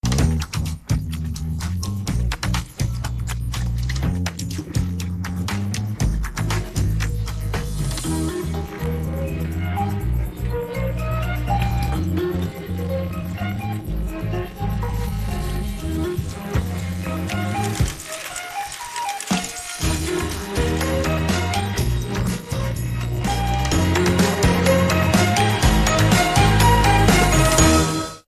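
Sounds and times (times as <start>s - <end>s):
bright pop music: 0.1s - 18.7s, 19.3s - 28.2s.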